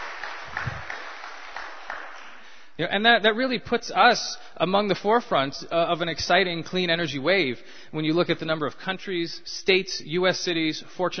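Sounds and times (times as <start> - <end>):
brief audience clapping: 0.0 - 2.7
speech: 2.8 - 11.1.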